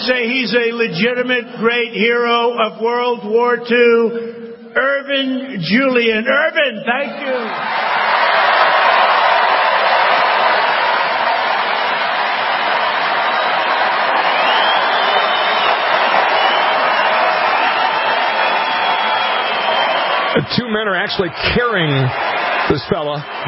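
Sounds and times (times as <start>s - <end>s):
speech: 0.0s - 7.9s, 20.4s - 23.4s
rally crowd cheering: 7.0s - 23.4s.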